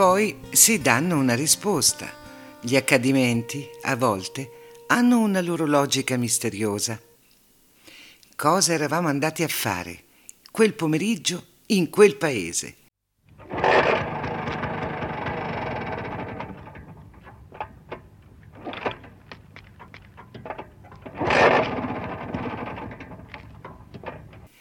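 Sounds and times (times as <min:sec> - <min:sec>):
speech: 0:00.0 - 0:07.1, 0:08.4 - 0:10.0, 0:10.6 - 0:12.8
mechanical clicks and knocks: 0:13.3 - 0:24.5
Vespa scooter engine revving: 0:13.4 - 0:18.0, 0:20.4 - 0:24.5.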